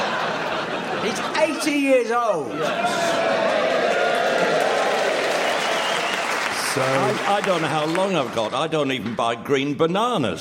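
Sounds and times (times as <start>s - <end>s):
laughter: 0.0s - 4.6s
speech: 1.1s - 4.0s, 6.8s - 10.3s
audience clapping: 2.8s - 9.0s.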